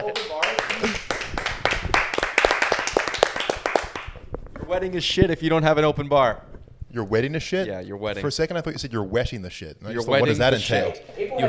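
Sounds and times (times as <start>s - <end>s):
few people clapping: 0.0s - 4.3s
speech: 4.7s - 11.4s.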